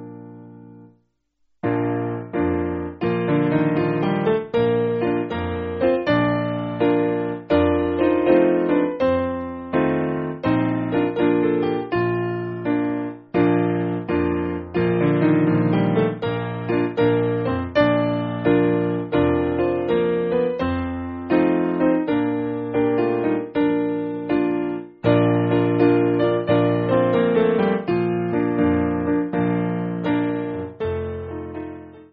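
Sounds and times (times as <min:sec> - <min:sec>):
simple piano piece: 0:00.0 - 0:01.0, 0:01.6 - 0:32.1.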